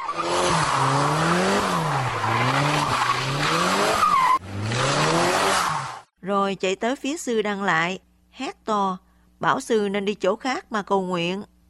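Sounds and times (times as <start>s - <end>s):
truck accelerating: 0.0s - 6.1s
truck tires screeching on the road: 0.0s - 6.1s
speech: 6.5s - 11.5s.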